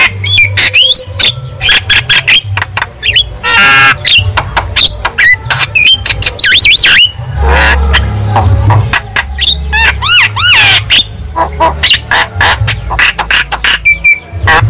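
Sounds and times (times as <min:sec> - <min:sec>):
Javan myna whistling and chattering: 0:00.2 - 0:14.6.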